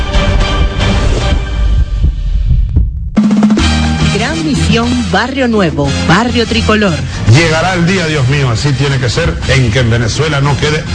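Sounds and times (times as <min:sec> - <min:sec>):
heartbeat sound effect in a satellite TV radio channel advertisement: 0:00.0 - 0:04.1
speech: 0:04.8 - 0:10.9.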